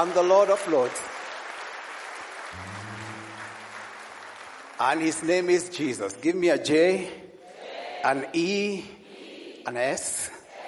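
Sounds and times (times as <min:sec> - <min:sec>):
speech: 0:00.0 - 0:01.2, 0:04.8 - 0:07.2, 0:08.0 - 0:09.0, 0:09.6 - 0:10.4
audience hand clapping: 0:00.0 - 0:06.1.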